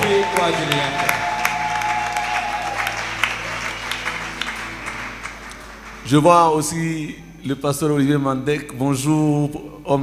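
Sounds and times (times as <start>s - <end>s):
church congregation applauding during a Christmas celebration service: 0.0s - 7.0s
speech: 0.4s - 1.3s, 6.1s - 10.0s.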